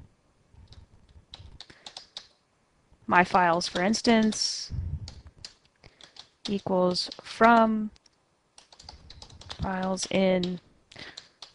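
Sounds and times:
computer keyboard key clicks typing code: 0.7 - 2.3, 5.1 - 7.7, 8.6 - 10.6
speech: 3.1 - 4.8, 6.5 - 8.0, 9.6 - 10.6.

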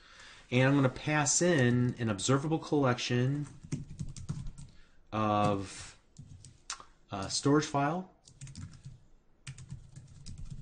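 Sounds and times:
speech: 0.5 - 3.8, 5.2 - 5.9, 7.1 - 8.6
rapid typing on a computer keyboard while writing code: 3.4 - 4.8, 6.2 - 6.6, 8.2 - 10.6.

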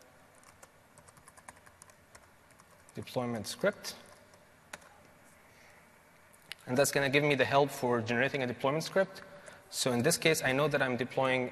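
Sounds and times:
typing a command on a computer keyboard: 0.3 - 3.1
speech: 3.0 - 4.0, 6.7 - 11.5.

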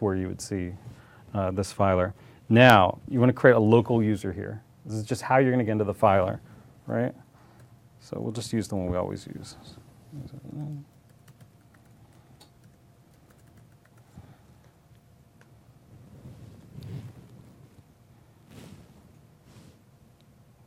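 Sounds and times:
speech: 0.0 - 7.2, 8.0 - 10.9
low hum: 0.0 - 20.6
typing a password on a computer keyboard: 10.6 - 14.2.

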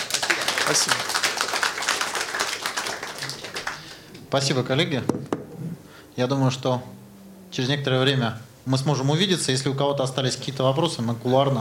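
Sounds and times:
audience applause: 0.0 - 4.2
speech: 0.7 - 1.2, 4.3 - 5.4, 6.2 - 11.5.

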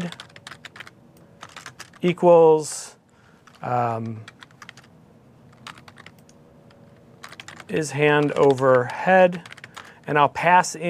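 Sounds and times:
computer keyboard typing as code is written: 0.0 - 2.1, 3.4 - 4.9, 5.5 - 10.1
speech: 2.0 - 2.9, 3.6 - 4.4, 7.7 - 9.5, 10.1 - 10.8.

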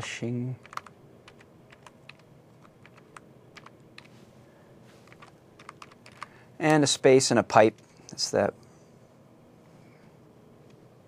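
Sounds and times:
speech: 0.0 - 0.7, 6.6 - 8.6
low hum: 0.0 - 11.0
typing a command on a computer keyboard: 0.6 - 4.2, 5.0 - 6.3.

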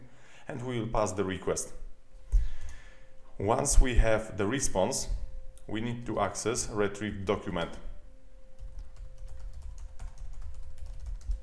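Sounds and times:
low constant hum: 0.0 - 11.4
speech: 0.5 - 1.8, 3.4 - 7.9
rapid typing on a computer keyboard entering code: 8.6 - 11.4.

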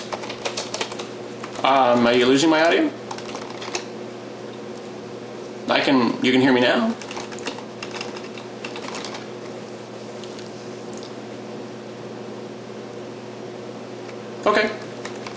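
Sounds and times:
typing on a computer keyboard: 0.0 - 1.7, 2.6 - 3.9, 7.0 - 9.3, 15.0 - 15.3
speech: 1.6 - 3.0, 5.8 - 7.0.

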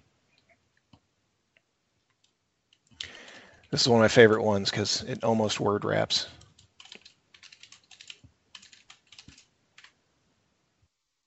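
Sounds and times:
speech: 3.7 - 6.4
typing on a computer keyboard while PowerShell commands are entered: 6.4 - 10.0.

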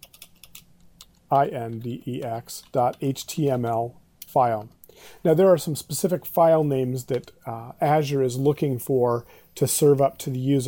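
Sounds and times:
typing a file name on a computer keyboard: 0.0 - 1.2
speech: 1.3 - 10.6.

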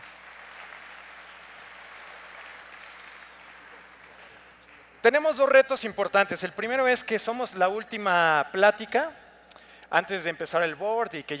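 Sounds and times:
audience applause: 0.0 - 5.0
speech: 5.0 - 9.2, 9.9 - 11.3.

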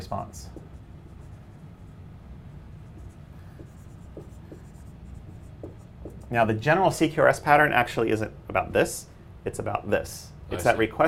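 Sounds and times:
speech: 0.1 - 0.6, 6.3 - 11.0
pen drawing a diagram: 0.6 - 1.6, 2.8 - 6.3.

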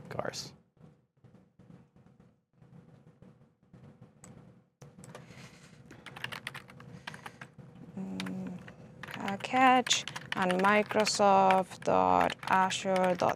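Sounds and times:
typing on computer keyboard: 4.2 - 5.3, 5.9 - 13.3
speech: 9.4 - 13.3.

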